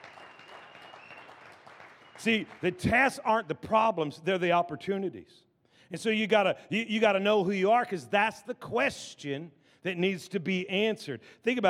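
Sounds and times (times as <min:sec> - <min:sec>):
audience applauding: 0:00.0 - 0:02.8
speech: 0:02.2 - 0:11.6.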